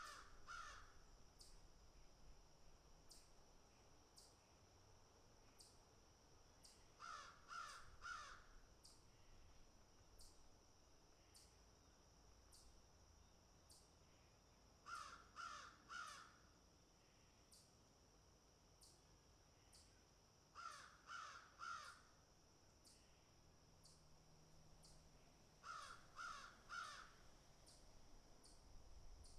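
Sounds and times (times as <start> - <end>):
crows cawing harshly: 0.0 - 1.0, 7.0 - 8.6, 14.9 - 16.4, 20.6 - 22.1, 25.6 - 27.2.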